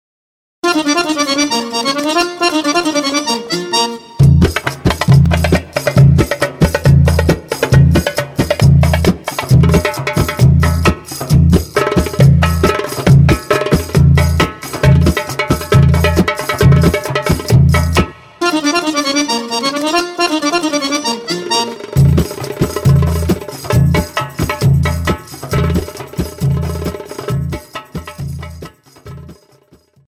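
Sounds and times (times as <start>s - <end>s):
tabla style oriental belly dance music: 0.6s - 30.0s.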